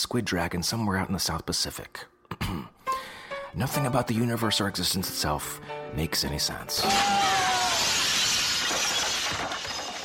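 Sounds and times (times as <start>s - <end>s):
speech: 0.1s - 2.7s, 3.5s - 7.4s
glass shattering in a loud bright crash: 6.8s - 10.0s.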